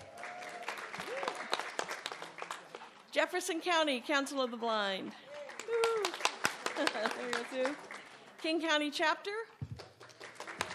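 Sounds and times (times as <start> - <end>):
audience clapping: 0.0 - 3.1, 5.2 - 8.9, 9.6 - 10.7
speech: 3.2 - 5.8, 6.8 - 9.4.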